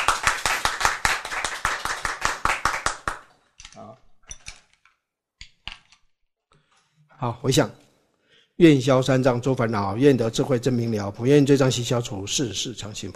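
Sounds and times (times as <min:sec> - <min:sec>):
audience clapping hands: 0:00.0 - 0:03.4
speech: 0:07.2 - 0:07.8, 0:08.6 - 0:13.1.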